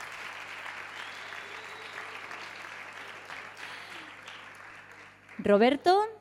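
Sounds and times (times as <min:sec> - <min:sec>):
audience applause for singers being introduced: 0:00.0 - 0:05.5
speech: 0:05.4 - 0:06.1.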